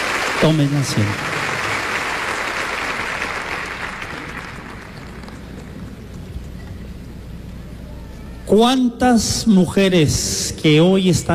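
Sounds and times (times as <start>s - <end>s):
audience applauding: 0.0s - 6.3s
speech: 0.4s - 1.4s, 8.5s - 11.3s.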